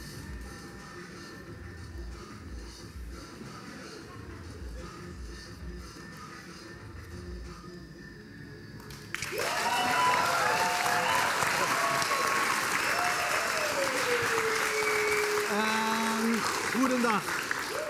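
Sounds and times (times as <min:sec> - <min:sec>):
audience applause: 0:09.1 - 0:17.8.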